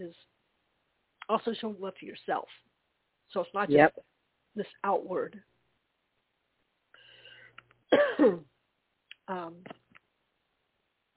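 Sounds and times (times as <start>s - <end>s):
speech: 0.0s - 0.3s, 1.3s - 2.7s, 3.3s - 5.5s, 7.9s - 8.5s, 9.3s - 9.8s
person coughing and throat clearing from choking on something: 7.9s - 8.5s.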